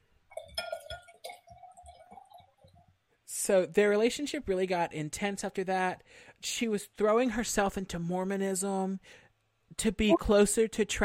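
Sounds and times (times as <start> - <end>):
wine pouring into a wine glass: 0.3 - 3.0
speech: 3.4 - 9.2, 9.8 - 11.0.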